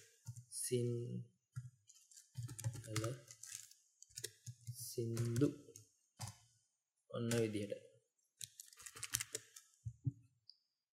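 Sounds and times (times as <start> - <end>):
speech: 0.7 - 1.3, 2.9 - 3.3, 5.0 - 5.6, 7.2 - 7.9
computer keyboard typing: 2.2 - 6.4, 8.4 - 9.6.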